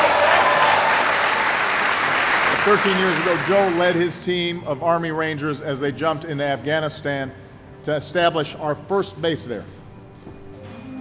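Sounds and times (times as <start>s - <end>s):
audience applause: 0.0s - 4.0s
speech: 2.6s - 9.8s.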